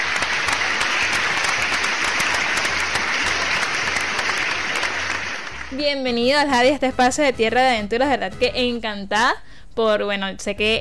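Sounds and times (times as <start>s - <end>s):
audience applause: 0.0s - 5.8s
speech: 5.8s - 10.8s.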